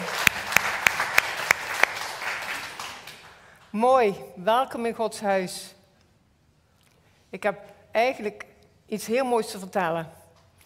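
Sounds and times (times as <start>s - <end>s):
audience welcoming applause: 0.0s - 3.5s
speech: 3.7s - 5.8s, 7.3s - 10.2s.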